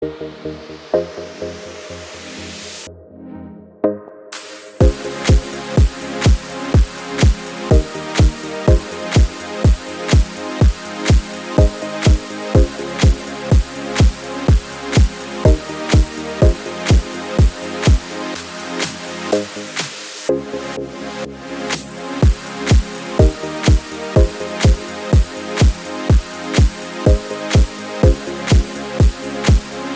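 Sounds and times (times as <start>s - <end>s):
pixel beat: 3.8s - 18.2s, 22.2s - 29.9s.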